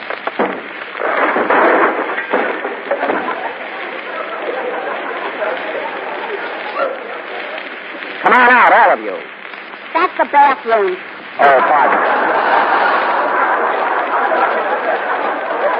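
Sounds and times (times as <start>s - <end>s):
rough clatter: 0.0s - 3.5s
door being broken in: 0.0s - 3.6s
laughter: 2.8s - 8.0s, 11.4s - 15.7s
speech: 10.2s - 12.2s.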